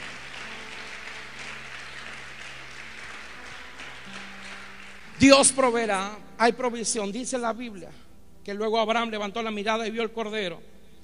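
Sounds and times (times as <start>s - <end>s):
audience applause: 0.0s - 5.6s
low sustained musical tone humming: 0.0s - 11.0s
speech: 5.2s - 10.7s.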